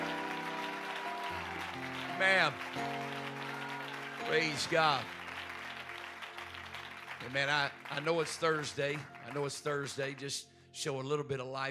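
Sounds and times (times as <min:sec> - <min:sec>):
audience clapping hands: 0:00.0 - 0:10.4
speech: 0:02.2 - 0:02.8, 0:04.3 - 0:05.2, 0:07.2 - 0:11.7.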